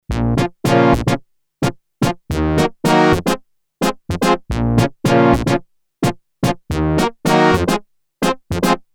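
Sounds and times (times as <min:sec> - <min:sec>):
Yamaha TX81Z FM synthesizer: 0:00.1 - 0:08.9.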